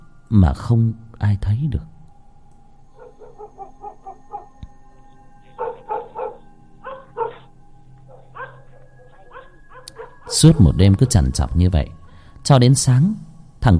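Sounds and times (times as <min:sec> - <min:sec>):
speech: 0:00.3 - 0:01.9, 0:10.3 - 0:13.7
chained dog barking loudly at a window: 0:03.0 - 0:04.5, 0:05.5 - 0:07.5, 0:08.1 - 0:10.5.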